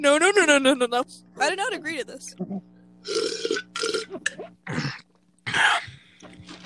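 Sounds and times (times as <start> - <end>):
speech: 0.0 - 6.6
slurping pickle juice: 3.0 - 5.1.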